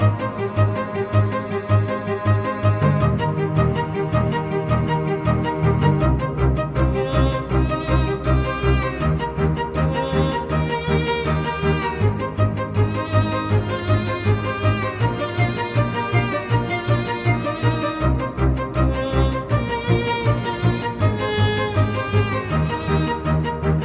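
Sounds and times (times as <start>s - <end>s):
violin: 0.0s - 23.8s.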